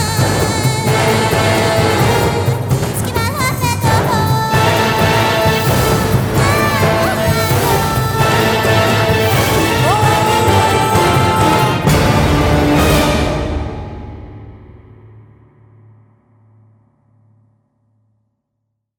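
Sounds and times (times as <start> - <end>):
Persian combat music: 0.0 - 15.1.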